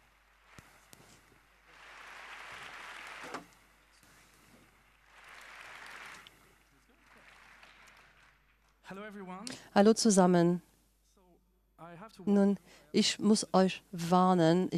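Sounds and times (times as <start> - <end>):
audience applause: 0.0 - 9.0
speech: 8.9 - 10.7, 12.1 - 14.7.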